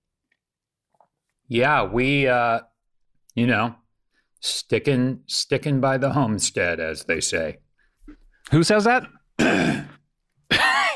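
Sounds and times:
speech: 0:01.5 - 0:02.7, 0:03.4 - 0:03.8, 0:04.4 - 0:09.9
cough: 0:09.4 - 0:10.9.

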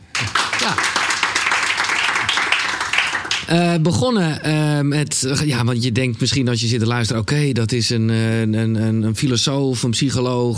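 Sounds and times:
crowd applause: 0:00.0 - 0:03.6
speech: 0:00.7 - 0:00.9, 0:03.5 - 0:10.5.

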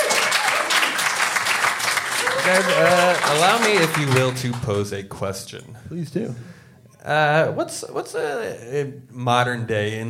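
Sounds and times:
audience applause: 0:00.0 - 0:04.8
speech: 0:02.4 - 0:10.0.

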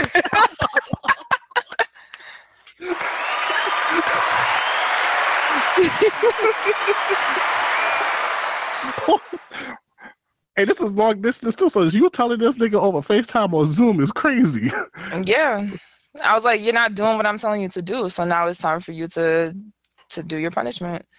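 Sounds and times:
laughter: 0:00.0 - 0:09.8, 0:13.1 - 0:15.8
audience applause: 0:02.8 - 0:09.7
voices cheering: 0:02.8 - 0:09.8
speech: 0:10.6 - 0:21.1.

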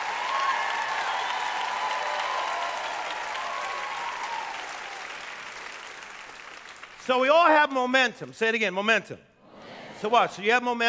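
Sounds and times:
crowd clapping: 0:00.0 - 0:07.6
speech: 0:07.1 - 0:09.3, 0:10.0 - 0:10.8.

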